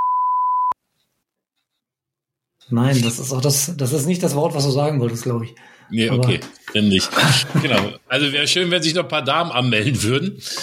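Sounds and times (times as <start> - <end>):
high-pitched censor bleep: 0.0 - 0.8
speech: 2.7 - 10.6
laughter: 6.9 - 8.1.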